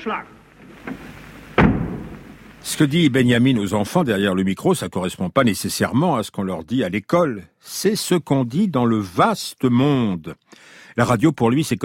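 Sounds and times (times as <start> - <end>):
speech: 0.0 - 1.0, 2.6 - 11.8
door pulled shut: 0.8 - 2.4.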